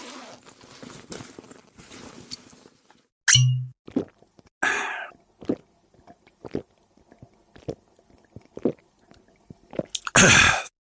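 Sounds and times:
swallowing: 3.9s - 10.2s
swigging Wild Turkey bourbon from a bottle: 3.9s - 10.6s.

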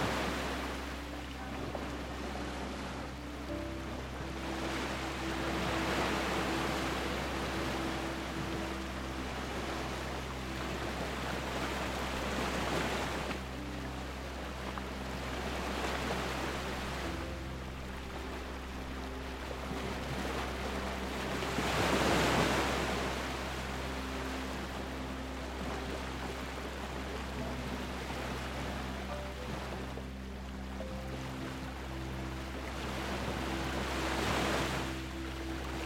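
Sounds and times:
low engine-like drone: 0.0s - 35.8s
ocean waves washing ashore: 0.0s - 35.8s.

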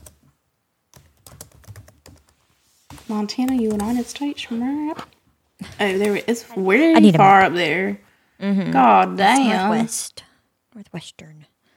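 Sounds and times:
typing on a computer keyboard: 0.0s - 0.3s, 0.9s - 2.4s, 3.0s - 4.0s
speech: 3.1s - 5.2s, 5.8s - 10.2s, 10.8s - 11.5s.

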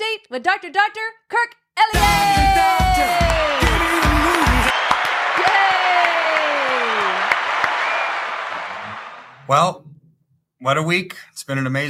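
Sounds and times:
speech: 0.3s - 3.3s, 9.5s - 9.9s, 10.6s - 11.8s
audience applause and cheering: 2.0s - 9.5s.

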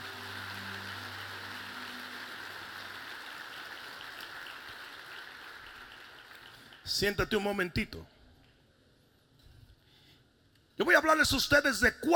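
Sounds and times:
audience clapping: 0.0s - 7.7s
speech: 6.9s - 8.2s, 11.0s - 12.1s.

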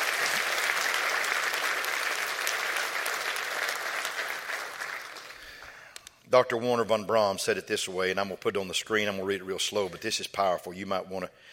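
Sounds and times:
audience clapping hands: 0.0s - 5.6s
speech: 6.3s - 11.5s.

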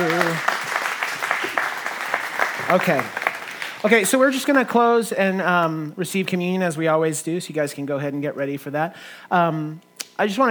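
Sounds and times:
audience applause: 0.0s - 4.6s
speech: 2.7s - 3.2s, 3.8s - 10.4s.

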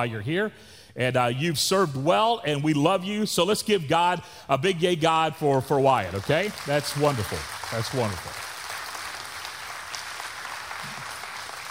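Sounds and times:
speech: 0.0s - 8.5s
applause from a standing ovation: 6.0s - 11.7s.

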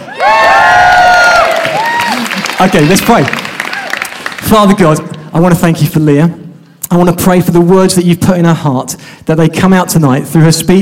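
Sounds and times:
crowd cheering: 0.0s - 4.5s
speech: 2.6s - 3.5s, 4.5s - 10.8s.

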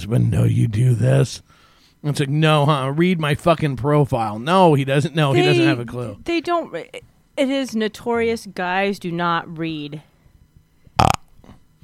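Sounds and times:
speech: 0.0s - 10.1s
loud throaty burp: 11.0s - 11.3s.

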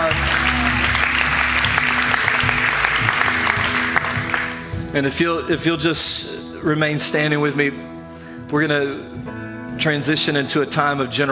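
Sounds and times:
congregation at a church service applauding: 0.0s - 4.8s
speech: 5.0s - 7.9s, 8.5s - 11.3s.

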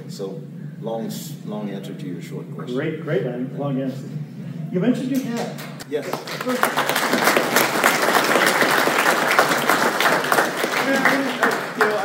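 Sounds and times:
speech: 0.1s - 7.6s
audience applause: 6.0s - 12.0s.

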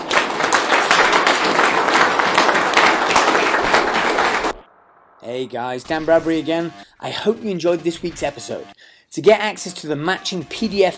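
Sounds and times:
audience applause: 0.0s - 4.6s
speech: 5.3s - 10.9s.

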